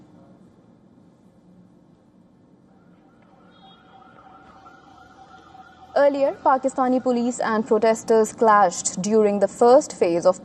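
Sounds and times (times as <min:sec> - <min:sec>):
dense street noise: 0:00.0 - 0:10.4
traffic rumble: 0:01.7 - 0:10.4
ambulance siren: 0:02.7 - 0:08.1
speech: 0:06.0 - 0:10.4.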